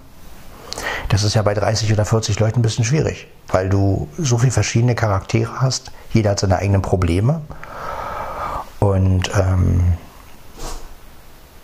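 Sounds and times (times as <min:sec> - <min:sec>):
speech: 0:01.2 - 0:07.9, 0:09.0 - 0:10.0
person sneezing: 0:10.6 - 0:10.9.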